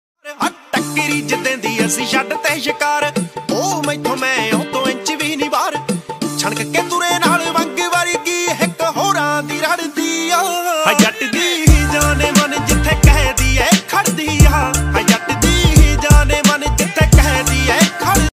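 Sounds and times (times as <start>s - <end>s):
Punjabi DJ music ringtone: 0.2s - 18.3s.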